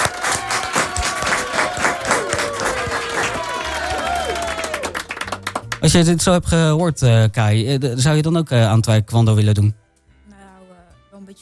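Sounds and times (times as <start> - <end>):
audience applause: 0.0 - 6.3
speech: 5.8 - 9.8.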